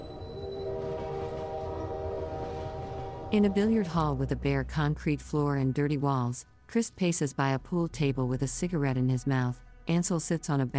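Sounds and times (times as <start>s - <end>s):
yellow Union Pacific freight train passing: 0.0s - 4.9s
sustained chord-like droning tone: 0.0s - 6.6s
speech: 3.3s - 10.7s.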